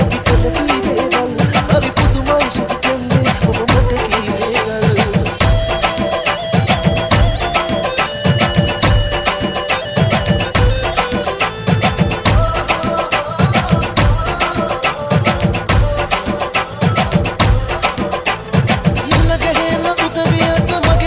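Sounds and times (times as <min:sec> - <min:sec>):
Tamil beat mix: 0:00.0 - 0:21.0.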